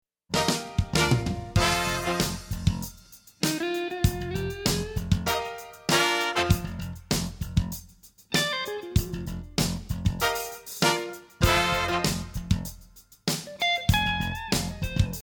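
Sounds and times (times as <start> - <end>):
bluesy music: 0.3 - 15.2.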